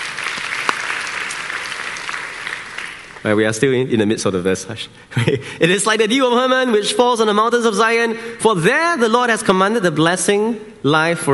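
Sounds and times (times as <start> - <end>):
church congregation applauding: 0.0 - 3.4
speech: 3.2 - 11.3.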